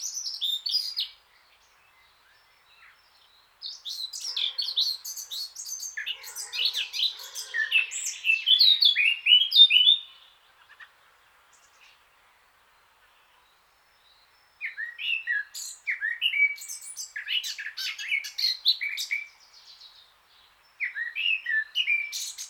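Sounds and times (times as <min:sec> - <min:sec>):
Eurasian blackcap Sylvia atricapilla song: 0:00.0 - 0:10.9, 0:13.0 - 0:22.4.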